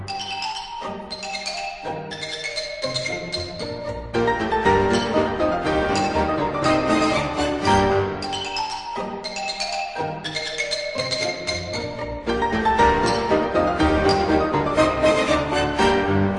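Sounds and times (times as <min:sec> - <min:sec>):
xylophone: 0:00.1 - 0:16.2.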